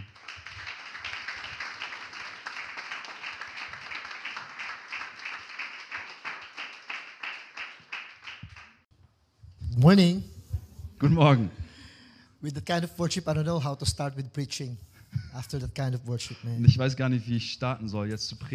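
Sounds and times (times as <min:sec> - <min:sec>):
audience applause: 0:00.0 - 0:08.8
speech: 0:09.8 - 0:10.3, 0:11.0 - 0:11.6, 0:12.4 - 0:18.5.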